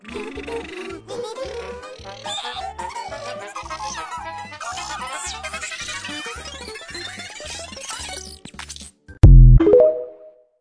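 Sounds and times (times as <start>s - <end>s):
very high-pitched tone: 9.2s - 10.3s.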